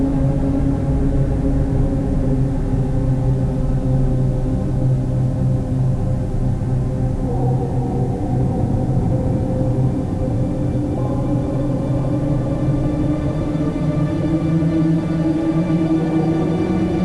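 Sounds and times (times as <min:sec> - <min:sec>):
Dead Sector ambience: 0:00.0 - 0:17.0.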